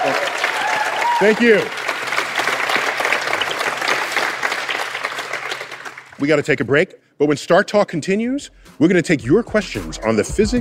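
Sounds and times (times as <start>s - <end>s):
speech: 0.0s - 0.4s, 1.2s - 1.8s, 6.2s - 10.6s
audience applause at a live science-fiction talk event: 0.0s - 6.2s.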